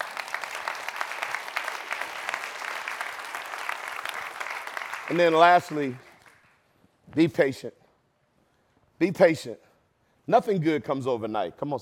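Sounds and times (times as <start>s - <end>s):
audience clapping: 0.0s - 6.7s
speech: 5.1s - 6.1s, 7.1s - 7.8s, 9.0s - 9.7s, 10.3s - 11.8s.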